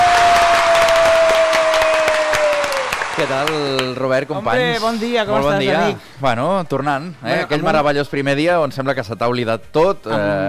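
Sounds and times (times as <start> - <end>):
studio audience applause: 0.0 - 4.1
speech: 3.2 - 10.4.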